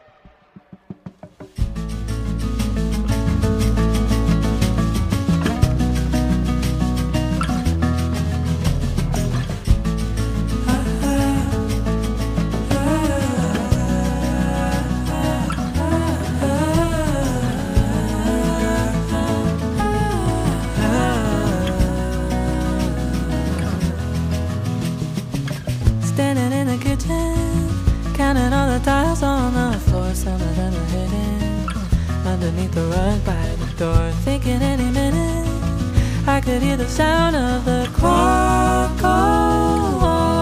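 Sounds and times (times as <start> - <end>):
recorded song from a debut album: 0.0 - 40.4.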